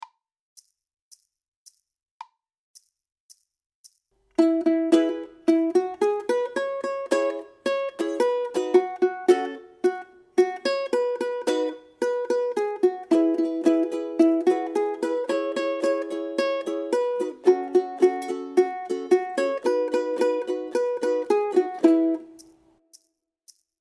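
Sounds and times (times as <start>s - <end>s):
two ukuleles: 4.3s - 22.6s.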